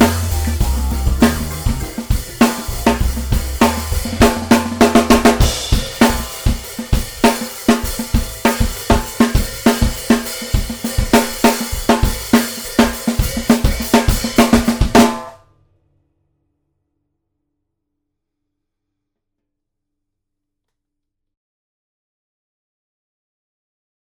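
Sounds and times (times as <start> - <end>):
jingle music: 0.0 - 5.8
drum: 0.0 - 15.3.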